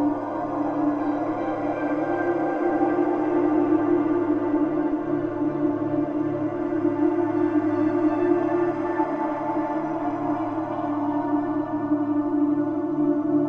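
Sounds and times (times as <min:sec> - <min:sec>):
ambience: 0:00.0 - 0:13.4.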